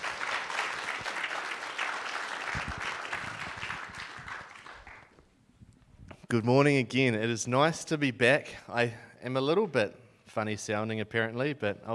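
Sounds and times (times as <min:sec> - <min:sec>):
audience clapping: 0:00.0 - 0:05.2
speech: 0:06.3 - 0:11.9.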